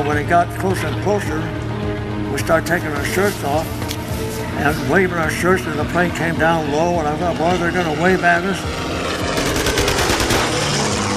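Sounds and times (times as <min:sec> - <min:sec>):
speech: 0:00.0 - 0:01.6, 0:02.3 - 0:09.0
machine gun firing: 0:09.4 - 0:10.9.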